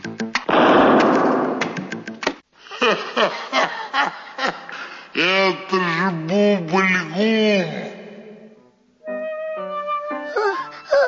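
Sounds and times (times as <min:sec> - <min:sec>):
sharp pops: 0:00.2 - 0:02.4
homemade can bombs exploding with crackling bangs: 0:00.5 - 0:01.8
voice making choppy laugh-like sounds: 0:02.6 - 0:07.3, 0:10.3 - 0:11.0
speech: 0:02.8 - 0:03.4, 0:05.2 - 0:07.3.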